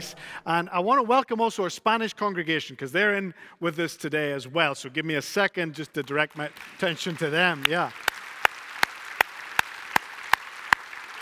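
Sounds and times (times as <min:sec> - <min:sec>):
speech: 0:00.0 - 0:08.1
church congregation clapping: 0:05.9 - 0:11.2.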